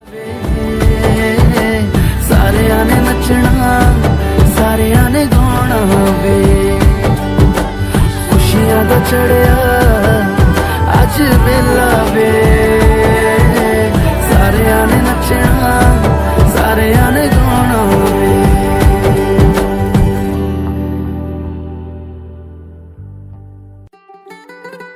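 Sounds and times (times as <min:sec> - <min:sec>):
Bollywood ringtone: 0:00.2 - 0:21.8.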